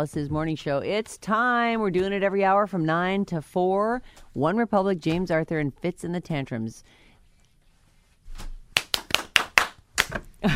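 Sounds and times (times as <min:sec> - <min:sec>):
speech: 0:00.0 - 0:07.0, 0:10.1 - 0:10.5
hand clapping: 0:08.8 - 0:10.3.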